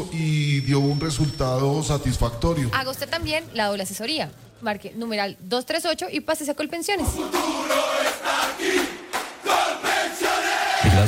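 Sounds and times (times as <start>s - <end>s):
speech: 0.1s - 7.9s
group shouting together enthusiastically: 7.0s - 11.0s.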